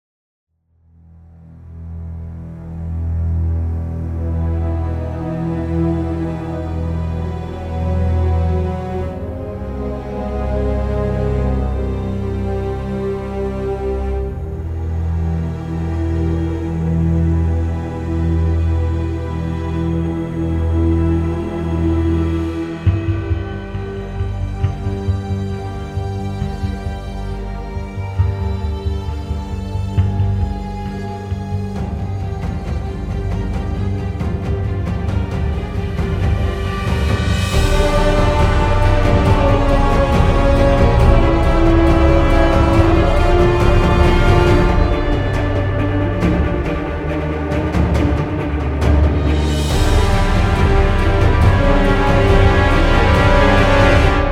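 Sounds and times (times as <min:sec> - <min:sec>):
cinematic orchestral hybrid music: 0:01.0 - 0:54.3.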